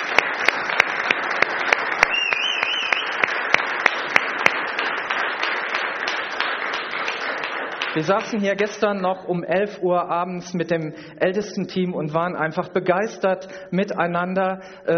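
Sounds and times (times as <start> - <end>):
audience applause: 0.0 - 8.4
speech: 8.0 - 14.9.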